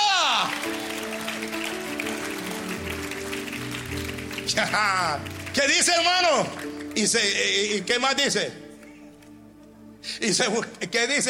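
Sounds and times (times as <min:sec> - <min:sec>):
audience applauding: 0:00.0 - 0:07.8
speech: 0:04.5 - 0:08.6, 0:10.2 - 0:11.2.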